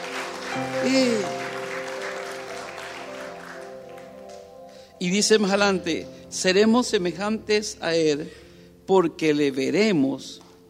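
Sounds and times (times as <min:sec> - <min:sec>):
audience applauding: 0:00.0 - 0:04.6
speech: 0:00.6 - 0:01.4, 0:05.0 - 0:10.4.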